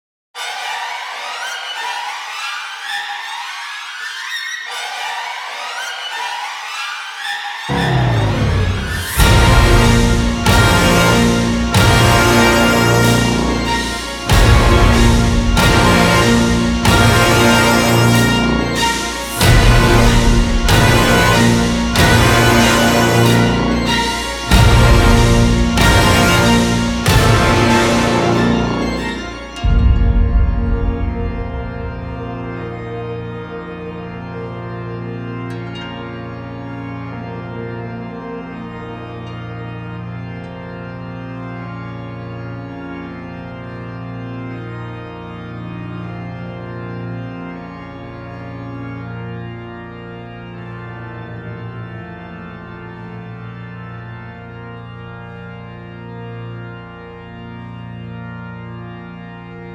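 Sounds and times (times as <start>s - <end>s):
dramatic fight music: 7.7s - 35.2s.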